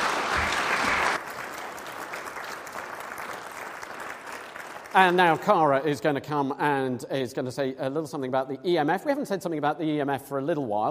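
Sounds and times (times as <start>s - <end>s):
audience applause: 0.0s - 5.7s
speech: 5.0s - 10.8s.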